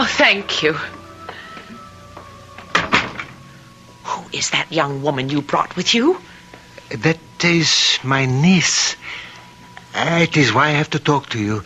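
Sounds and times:
speech: 0.0s - 1.0s, 4.4s - 6.3s, 6.9s - 9.2s, 10.0s - 11.6s
door being opened: 0.8s - 3.5s.

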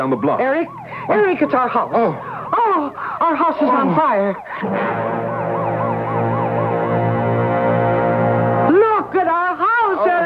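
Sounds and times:
speech: 0.0s - 5.3s, 9.2s - 9.5s
fire engine siren: 0.0s - 10.2s.

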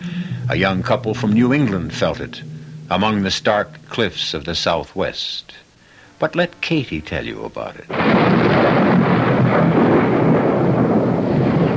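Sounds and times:
storm: 0.0s - 4.6s, 7.9s - 11.7s
speech: 0.5s - 5.6s, 6.2s - 8.6s.

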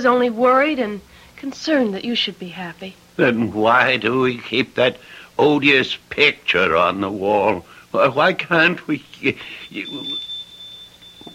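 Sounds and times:
speech: 0.0s - 10.3s
low noise: 0.0s - 11.3s
shop door bell tinkling: 9.0s - 11.3s.

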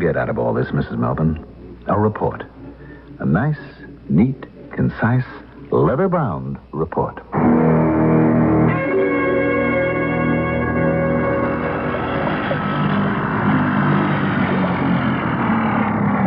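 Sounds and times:
speech: 0.0s - 2.6s, 3.2s - 7.9s
motorboat engine running on open water: 8.8s - 16.2s.

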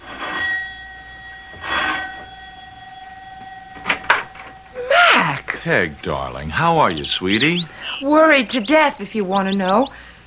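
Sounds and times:
doorbell ringing: 0.0s - 7.8s
speech: 5.6s - 10.0s.

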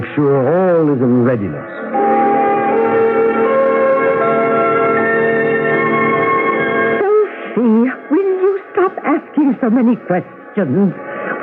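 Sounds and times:
speech: 0.2s - 2.3s, 7.6s - 11.4s
bells ringing: 1.8s - 9.4s.

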